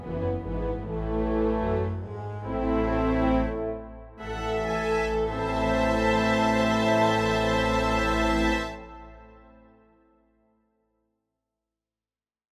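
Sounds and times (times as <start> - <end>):
flute playing symphony movement: 0.1 - 9.8.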